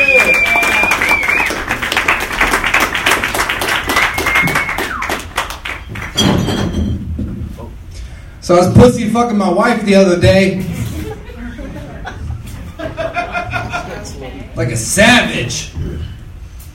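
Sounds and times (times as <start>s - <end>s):
high whistle: 0.0s - 1.6s, 4.0s - 5.2s
audience clapping hands: 0.0s - 6.2s
speech: 8.5s - 10.7s, 14.6s - 15.7s
laughter: 10.8s - 14.5s.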